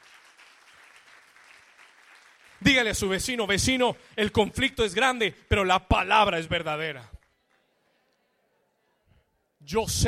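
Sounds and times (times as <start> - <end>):
audience applause: 0.0 - 3.4
speech: 2.6 - 7.2, 9.6 - 10.0.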